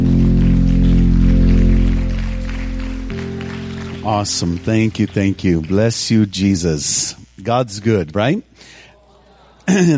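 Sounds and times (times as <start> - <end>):
audience applause, hand clapping: 0.0 - 6.5
speech: 4.1 - 8.8, 9.7 - 9.9.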